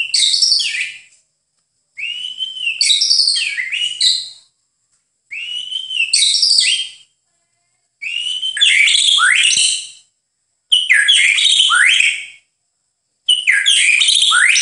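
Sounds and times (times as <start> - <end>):
white-eye song: 0.0 - 1.1, 2.0 - 4.5, 5.4 - 7.1, 8.0 - 10.1, 10.7 - 12.5, 13.3 - 14.6.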